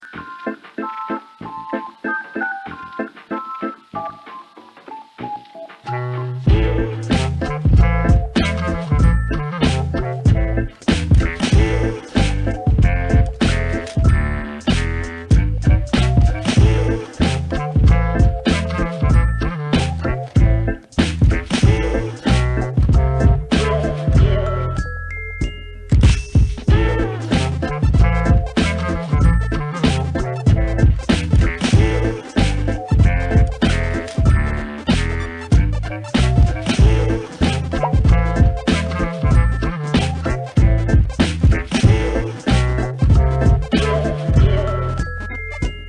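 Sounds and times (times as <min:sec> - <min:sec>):
music: 0:00.0 - 0:45.8.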